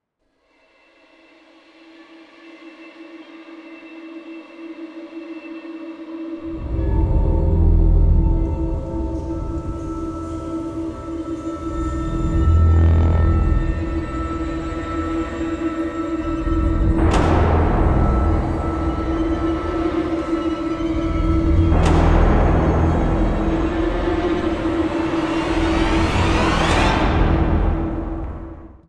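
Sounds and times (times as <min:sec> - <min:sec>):
horror music: 0:01.0 - 0:28.8.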